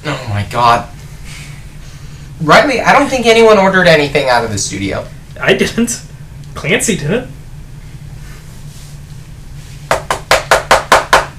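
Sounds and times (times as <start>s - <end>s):
speech: 0.0s - 1.0s, 2.4s - 7.4s
low hum: 0.0s - 11.3s
knocking at the door: 9.9s - 11.3s.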